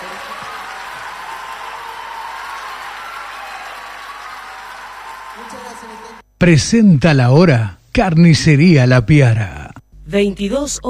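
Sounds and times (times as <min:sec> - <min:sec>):
audience applause: 0:00.0 - 0:06.2
speech: 0:05.5 - 0:10.8.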